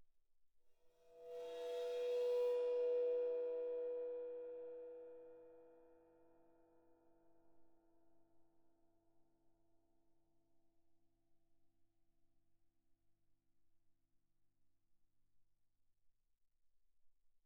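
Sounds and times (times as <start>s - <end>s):
bowed 21 ride and suspended cymbals: 1.1s - 5.7s.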